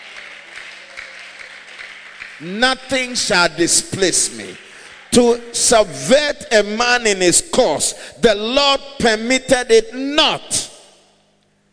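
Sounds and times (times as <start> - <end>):
church congregation clapping as an amen during a sermon: 0.0 - 5.9
low constant hum: 0.0 - 11.7
speech: 2.4 - 10.7.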